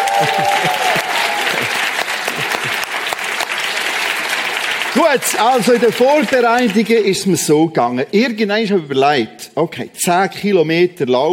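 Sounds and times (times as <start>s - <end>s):
laughter: 0.0s - 3.1s
audience applause: 0.0s - 7.3s
speech: 0.2s - 0.8s, 5.1s - 11.3s.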